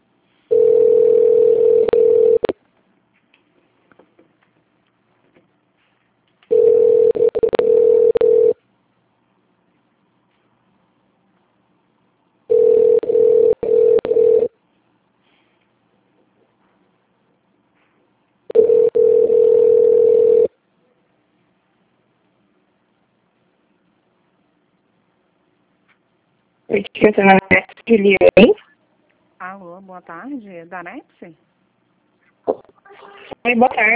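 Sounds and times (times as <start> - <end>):
telephone ringback tone while a call to a company line connects: 0.5 - 2.5, 6.5 - 8.6, 12.5 - 14.5, 18.5 - 20.5
speech: 27.0 - 28.6, 30.0 - 31.5, 33.4 - 33.9.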